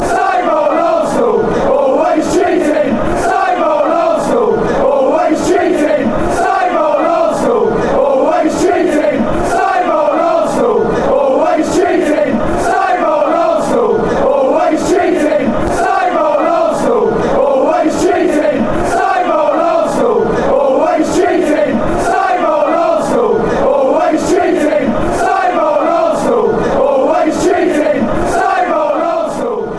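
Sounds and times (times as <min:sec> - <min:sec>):
fans chanting: 0:00.0 - 0:29.7.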